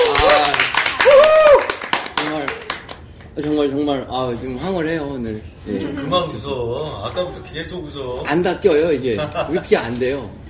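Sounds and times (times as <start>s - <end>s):
excited voices whooping and exclaiming: 0.0s - 1.8s
several people clapping: 0.0s - 3.7s
speech: 3.4s - 10.4s.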